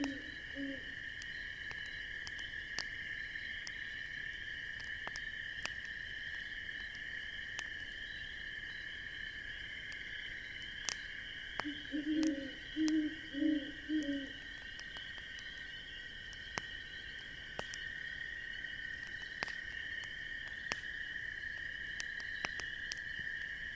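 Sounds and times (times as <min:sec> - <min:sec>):
low croaking call: 0:00.0 - 0:01.0, 0:11.6 - 0:14.5
campfire crackling: 0:00.0 - 0:23.7
shrill chorus of insects: 0:00.0 - 0:23.7.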